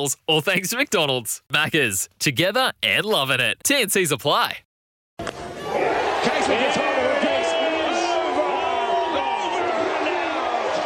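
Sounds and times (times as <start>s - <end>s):
speech: 0.0s - 5.3s, 6.2s - 6.9s
softball crowd cheering and whooping after a three-run hit: 5.2s - 10.8s.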